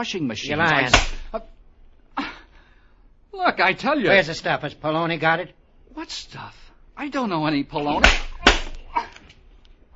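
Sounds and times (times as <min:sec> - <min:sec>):
speech: 0:00.0 - 0:01.6, 0:03.4 - 0:08.2
sharp slaps: 0:00.9 - 0:01.4, 0:07.9 - 0:09.2.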